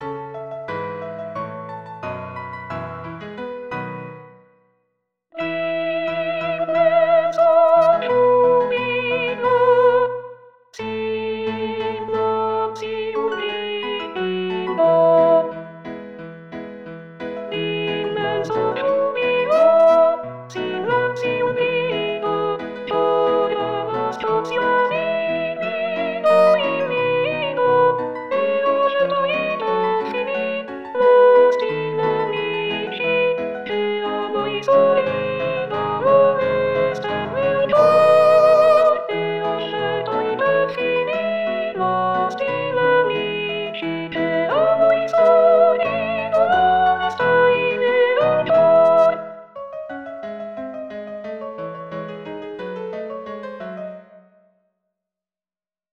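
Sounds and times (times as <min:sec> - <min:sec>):
sopranos singing: 0:05.4 - 0:15.7, 0:17.5 - 0:49.3.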